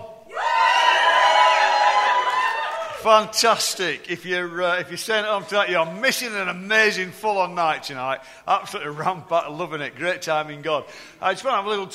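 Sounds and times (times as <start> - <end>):
crowd cheering: 0.3 - 3.5
speech: 3.0 - 11.9.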